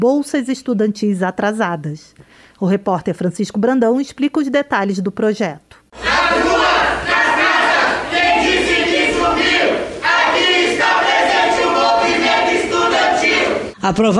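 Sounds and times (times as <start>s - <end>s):
speech: 0.0s - 6.5s, 13.8s - 14.1s
crowd of students cheering and chanting: 6.0s - 13.7s.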